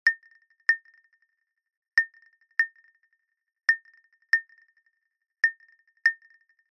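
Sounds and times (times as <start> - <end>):
soft woodblock: 0.0 - 1.3, 2.0 - 3.0, 3.7 - 6.7.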